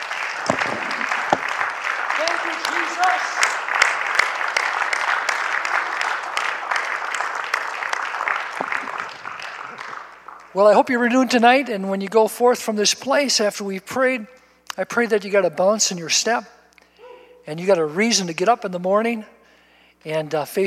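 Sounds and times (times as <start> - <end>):
audience hand clapping: 0.0 - 11.2
speech: 10.6 - 16.6, 17.5 - 19.4, 20.0 - 20.6.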